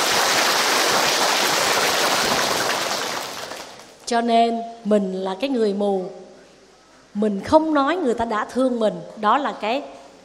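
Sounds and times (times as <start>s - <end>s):
round of applause: 0.0s - 4.0s
speech: 4.1s - 6.2s, 7.1s - 10.0s.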